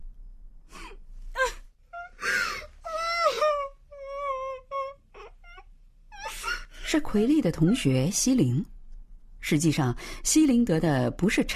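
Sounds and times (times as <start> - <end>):
woman crying: 0.8 - 8.1
speech: 6.9 - 8.8, 9.5 - 11.5.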